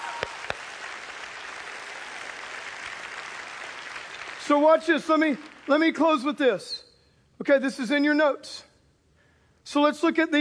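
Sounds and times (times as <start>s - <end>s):
audience clapping hands: 0.0s - 6.2s
speech: 4.5s - 8.7s, 9.7s - 10.3s.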